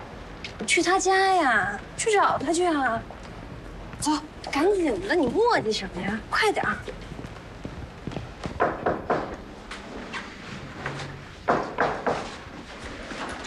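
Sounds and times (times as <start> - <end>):
speech: 0.6 - 3.2, 4.0 - 7.0
knocking on a door: 8.5 - 9.4, 11.5 - 12.3.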